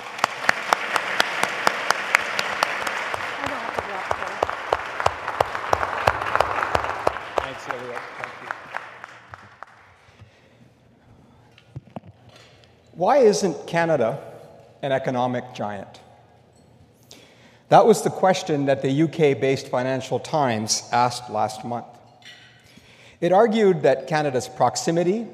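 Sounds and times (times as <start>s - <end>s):
audience applause welcoming two speakers to the stage at a public event: 0.0s - 10.1s
speech: 13.0s - 16.0s, 17.7s - 22.4s, 23.2s - 25.3s.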